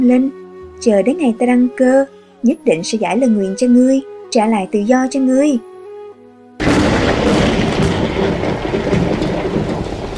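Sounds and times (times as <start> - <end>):
speech: 0.0 - 5.7
thunderclap from a clear sky: 6.6 - 10.1.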